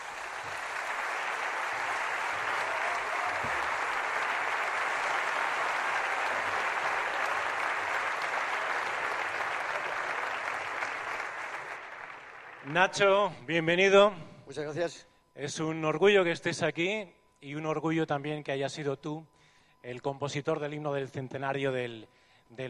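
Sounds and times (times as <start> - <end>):
audience applause: 0.0 - 13.1
speech: 12.7 - 22.6.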